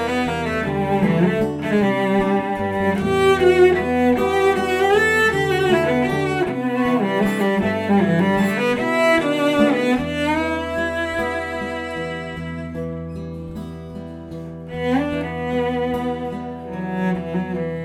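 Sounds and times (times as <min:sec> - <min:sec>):
cello: 0:00.0 - 0:17.8
guitar: 0:00.0 - 0:17.8.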